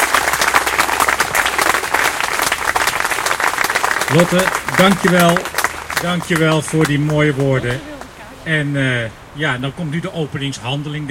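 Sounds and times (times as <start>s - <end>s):
audience applause: 0.0s - 8.2s
speech: 4.1s - 11.0s.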